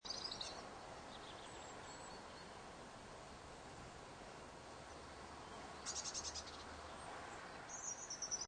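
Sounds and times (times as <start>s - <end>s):
few birds: 0.0s - 2.8s, 4.8s - 8.4s
light outdoor wind: 0.0s - 8.4s.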